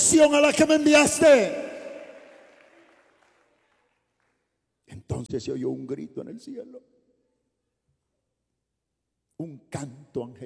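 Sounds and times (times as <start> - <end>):
speech: 0.1 - 1.6, 5.3 - 7.0, 9.4 - 10.4
audience applauding: 1.7 - 4.5.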